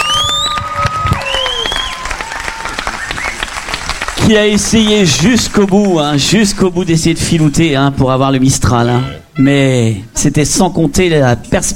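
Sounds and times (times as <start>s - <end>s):
audience applause: 0.0s - 6.6s
speech: 4.3s - 11.7s.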